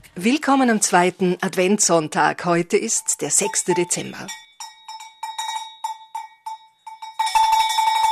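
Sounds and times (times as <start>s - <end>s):
speech: 0.2s - 4.5s
Saint Nicholas hand bell ringing: 3.3s - 8.1s.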